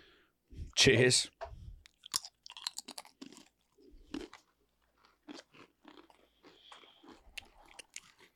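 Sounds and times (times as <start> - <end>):
speech: 0.8 - 1.4
crunching and chewing a dry cracker: 1.9 - 8.3.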